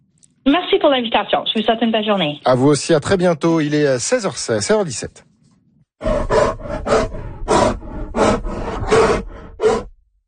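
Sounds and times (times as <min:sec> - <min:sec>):
speech: 0:00.4 - 0:05.3
grizzly bears roaring: 0:06.0 - 0:10.0.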